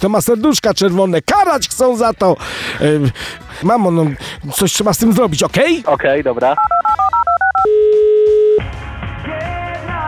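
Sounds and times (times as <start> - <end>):
speech: 0.0 - 7.1
two-tone DTMF beeps as a phone number is keyed in: 6.6 - 8.6.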